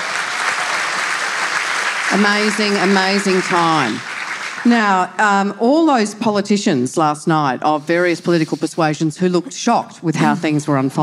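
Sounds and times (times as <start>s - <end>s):
audience applause: 0.0s - 5.0s
speech: 2.1s - 11.0s.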